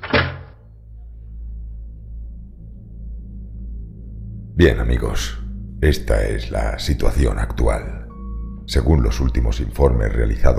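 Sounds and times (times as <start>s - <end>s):
door being closed: 0.0s - 0.6s
speech: 4.6s - 8.0s, 8.7s - 10.5s.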